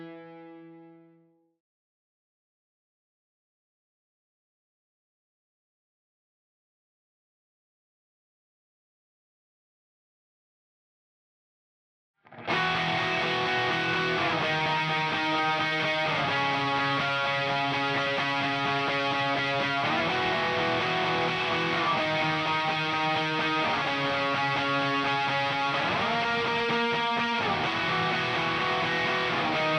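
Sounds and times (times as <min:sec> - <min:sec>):
bass guitar: 0:12.4 - 0:29.7.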